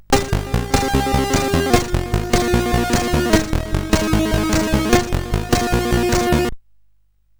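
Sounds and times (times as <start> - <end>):
SID CSG8580R5 chip music: 0.0 - 6.5.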